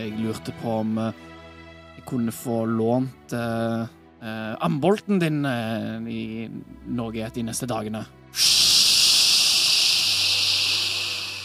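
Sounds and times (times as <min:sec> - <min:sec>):
speech: 0:00.0 - 0:01.4, 0:02.0 - 0:08.5
red-hot metal quenched in a bucket of water: 0:08.4 - 0:11.4.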